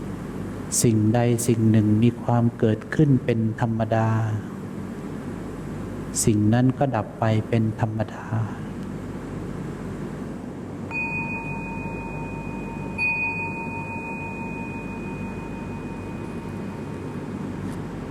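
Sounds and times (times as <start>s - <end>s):
speech: 0.8s - 4.5s, 6.1s - 8.6s
meditation bell ringing: 10.9s - 17.7s.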